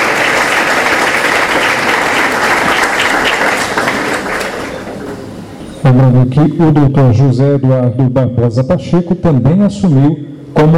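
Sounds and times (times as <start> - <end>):
crowd applause: 0.0 - 5.2
speech: 5.9 - 10.7.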